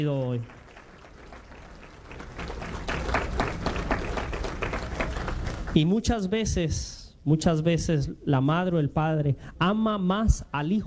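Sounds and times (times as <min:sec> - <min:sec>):
speech: 0:00.0 - 0:00.6, 0:05.8 - 0:10.8
audience applause: 0:00.1 - 0:05.8.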